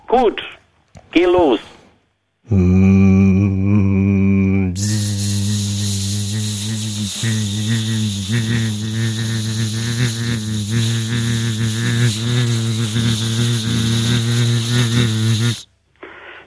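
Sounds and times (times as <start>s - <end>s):
speech: 0.1s - 1.8s
voice imitating a vintage car engine: 2.5s - 15.6s.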